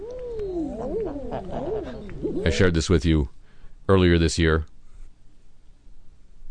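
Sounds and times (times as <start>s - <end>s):
eider duck short hooting calls: 0.0s - 2.8s
eider ducks moaning coos: 0.0s - 2.8s
speech: 1.4s - 4.7s.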